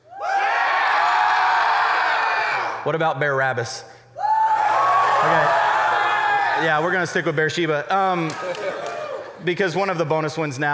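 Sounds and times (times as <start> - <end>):
audience screaming: 0.0 - 2.8, 4.2 - 7.2
speech: 2.8 - 3.9, 5.2 - 5.7, 6.6 - 10.7.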